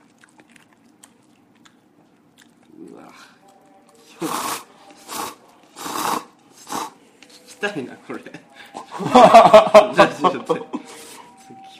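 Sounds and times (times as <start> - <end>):
loud chewing while eating: 0.0 - 7.0
speech: 3.0 - 3.4, 7.6 - 10.8
laughter: 8.8 - 10.9.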